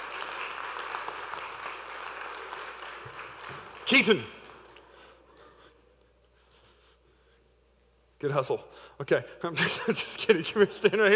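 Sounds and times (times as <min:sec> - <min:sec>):
crowd clapping: 0:00.0 - 0:05.1
speech: 0:03.9 - 0:04.4, 0:08.2 - 0:11.1.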